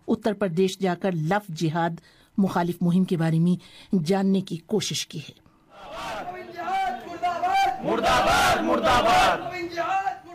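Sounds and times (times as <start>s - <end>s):
speech: 0.2s - 6.2s, 7.8s - 10.0s
crowd chanting slogans at a Hindu nationalist rally in Saharanpur: 5.7s - 9.6s.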